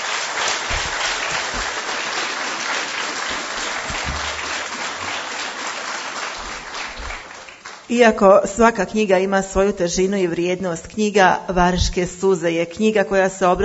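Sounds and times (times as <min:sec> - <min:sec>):
audience applause at a book presentation honoring a war survivor: 0:00.0 - 0:07.9
speech: 0:07.9 - 0:13.6.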